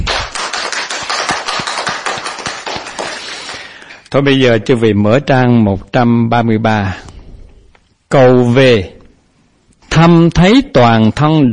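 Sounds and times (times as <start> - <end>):
audience applause: 0.0 - 3.8
speech: 4.1 - 7.1, 8.1 - 9.0, 10.0 - 11.5.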